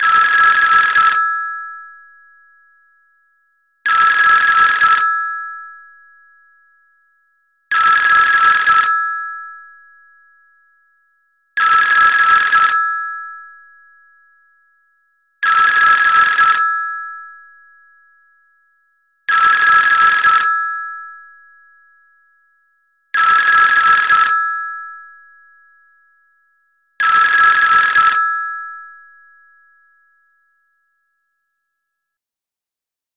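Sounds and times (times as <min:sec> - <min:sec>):
old phone: 0:00.0 - 0:01.9, 0:03.9 - 0:05.8, 0:07.7 - 0:09.7, 0:11.6 - 0:13.6, 0:15.4 - 0:17.5, 0:19.3 - 0:21.4, 0:23.2 - 0:25.3, 0:27.0 - 0:30.6.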